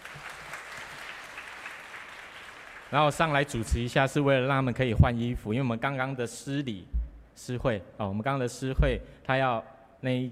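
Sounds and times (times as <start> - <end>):
audience applause: 0.0 - 3.0
speech: 2.9 - 10.3.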